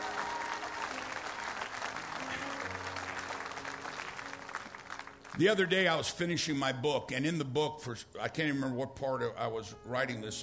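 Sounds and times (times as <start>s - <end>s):
audience clapping: 0.0s - 6.0s
speech: 5.4s - 10.4s.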